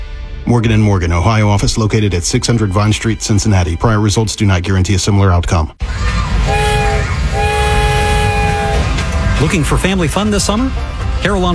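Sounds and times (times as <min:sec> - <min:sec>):
speech: 0:00.4 - 0:06.2, 0:09.4 - 0:11.5
train rumbling on rails: 0:05.8 - 0:11.5
train horn chord blasts: 0:06.4 - 0:09.3.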